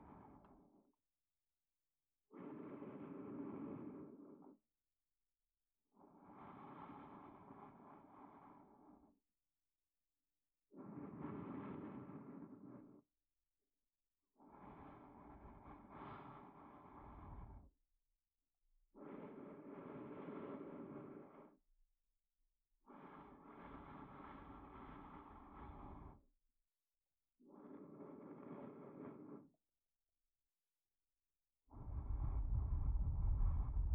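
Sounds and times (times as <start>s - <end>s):
sleep aid loop in left channel: 0.0s - 1.0s, 2.2s - 4.7s, 5.8s - 9.5s, 10.6s - 13.1s, 14.2s - 17.8s, 18.8s - 21.7s, 22.8s - 26.3s, 27.0s - 30.0s, 30.7s - 33.9s.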